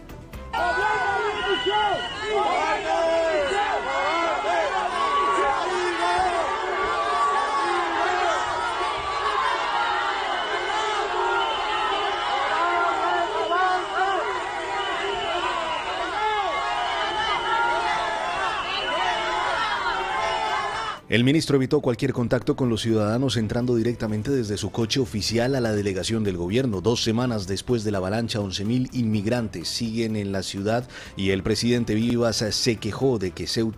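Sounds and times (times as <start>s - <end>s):
loud crowd shouting, jeering and insulting: 0.5s - 21.0s
crowd whistling: 1.1s - 2.7s, 13.2s - 16.2s
speech: 21.1s - 33.7s.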